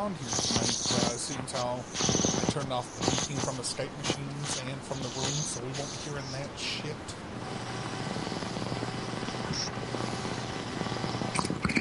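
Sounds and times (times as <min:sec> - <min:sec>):
speech: 0:00.0 - 0:07.8
water pipe bubbling: 0:00.0 - 0:11.7.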